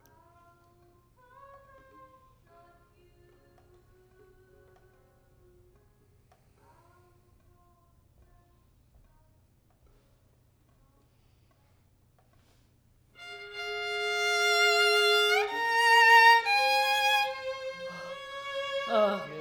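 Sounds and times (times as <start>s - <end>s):
violin: 13.2s - 19.4s.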